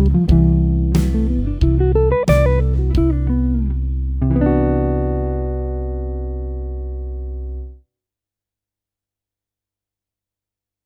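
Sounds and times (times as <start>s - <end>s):
jazz music: 0.0s - 7.6s.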